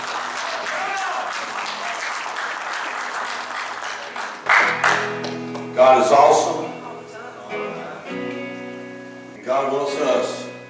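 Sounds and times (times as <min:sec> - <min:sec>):
audience clapping hands: 0:00.0 - 0:05.8
speech: 0:05.8 - 0:06.6.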